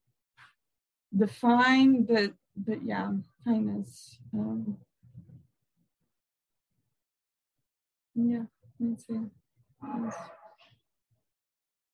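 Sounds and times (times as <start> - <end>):
speech: 1.1 - 4.9, 8.2 - 10.4
dog barking at the neighbors: 9.9 - 10.6.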